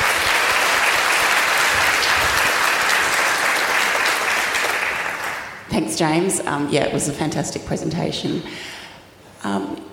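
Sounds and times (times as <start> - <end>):
audience applause: 0.0 - 5.7
speech: 5.8 - 8.8, 9.4 - 9.9.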